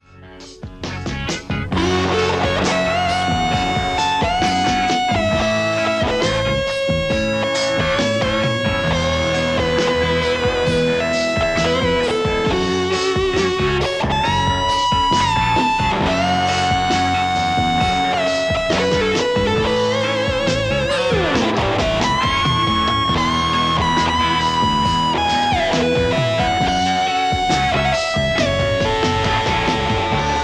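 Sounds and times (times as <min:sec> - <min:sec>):
Stratocaster electric guitar: 0:00.0 - 0:30.4.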